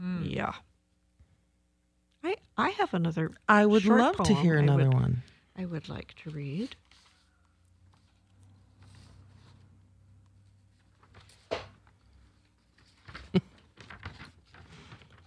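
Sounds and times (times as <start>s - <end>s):
speech: 0.2s - 0.7s, 2.2s - 6.9s
rustling papers: 4.0s - 15.2s.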